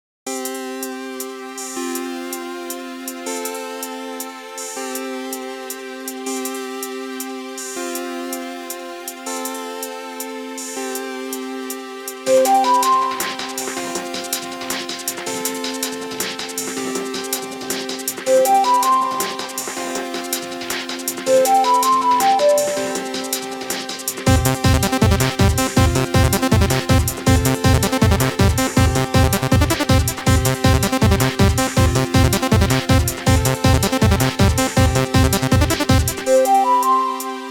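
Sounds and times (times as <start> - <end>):
instrumental music: 12.1 - 37.4.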